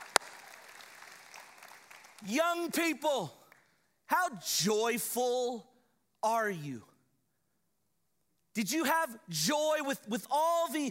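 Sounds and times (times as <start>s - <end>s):
audience applause: 0.0s - 2.2s
speech: 2.2s - 3.4s, 4.1s - 6.9s, 8.6s - 10.8s.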